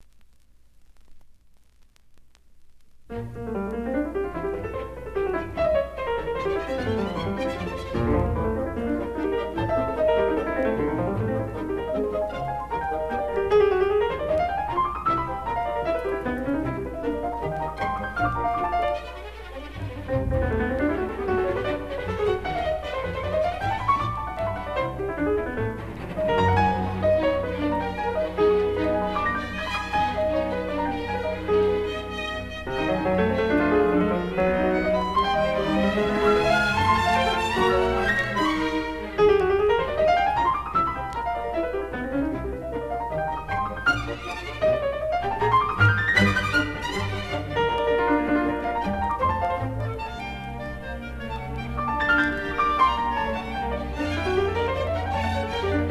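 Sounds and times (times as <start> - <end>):
piano and orchestra playing a vivace concerto movement: 3.1 - 55.8.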